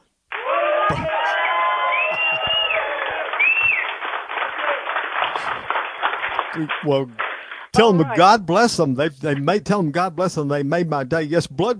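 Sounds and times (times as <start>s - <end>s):
conference audience applause: 0.3s - 7.9s
conference audience shout out: 0.4s - 3.9s
speech: 0.9s - 1.2s, 6.6s - 11.7s.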